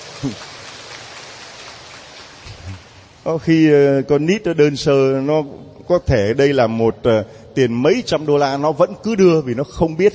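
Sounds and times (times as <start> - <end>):
applause: 0.0 - 2.7
speech: 0.2 - 0.5, 3.2 - 10.1.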